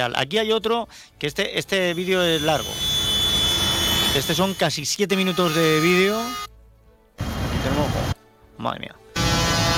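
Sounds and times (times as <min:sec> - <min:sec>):
speech: 0:00.0 - 0:03.0, 0:04.1 - 0:06.5, 0:07.6 - 0:09.0
tractors passing by: 0:01.9 - 0:04.6.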